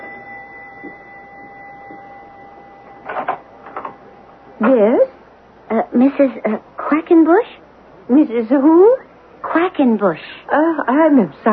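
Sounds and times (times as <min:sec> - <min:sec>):
doorbell ringing: 0:00.0 - 0:04.4
speech: 0:04.6 - 0:05.1, 0:06.0 - 0:09.0, 0:09.6 - 0:11.5.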